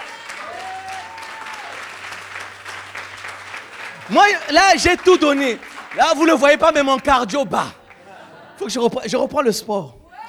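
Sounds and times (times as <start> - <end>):
high vocal cheer: 0.0 - 2.6, 3.6 - 10.2
audience clapping: 0.0 - 10.2
laughter: 0.6 - 10.0
speech: 4.1 - 7.8, 8.6 - 10.0.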